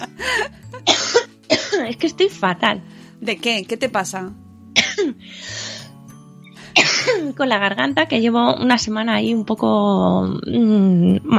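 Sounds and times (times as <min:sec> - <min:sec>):
person coughing in sudden fits: 0:00.8 - 0:02.0, 0:04.8 - 0:05.2, 0:06.8 - 0:07.3
speech: 0:02.0 - 0:04.4, 0:07.1 - 0:11.3.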